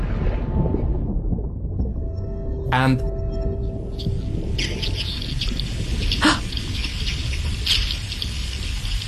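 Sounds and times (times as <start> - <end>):
herring crackling pulse trains underwater: 0.0 - 9.0
herring sounds recorded underwater by hydrophone: 0.0 - 9.0
speech: 2.7 - 3.1, 4.0 - 4.7
dense chorus of high, fizzing herring ticks: 4.0 - 9.0
steady hiss: 4.0 - 9.0.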